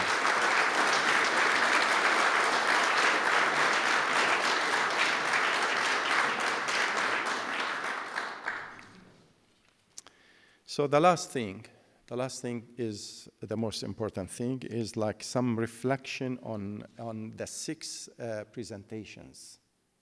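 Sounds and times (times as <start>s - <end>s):
audience applause: 0.0s - 9.1s
speech: 10.8s - 19.6s.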